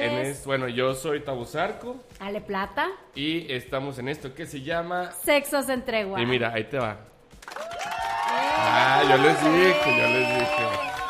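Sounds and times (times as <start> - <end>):
speech: 0.0 - 7.7, 8.6 - 10.9
canned applause sound effect with crowd cheers and whoops: 7.3 - 11.0.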